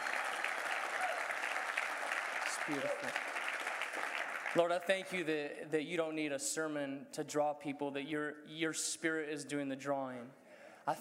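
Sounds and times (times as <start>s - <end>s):
audience clapping hands: 0.0s - 5.2s
speech: 2.6s - 3.4s, 4.5s - 10.9s.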